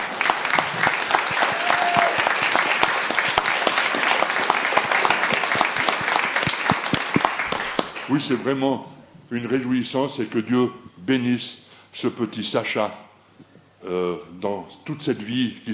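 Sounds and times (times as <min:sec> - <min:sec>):
audience applause: 0:00.0 - 0:08.1
speech: 0:08.1 - 0:13.1, 0:13.8 - 0:15.7.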